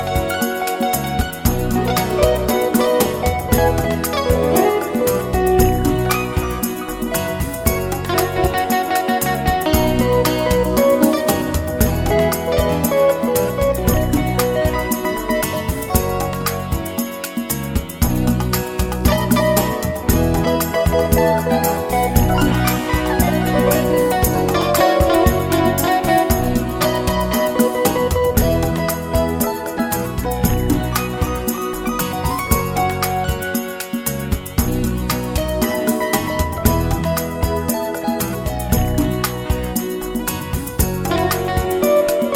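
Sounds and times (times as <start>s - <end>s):
pop beguine rhythm: 0.0s - 42.3s.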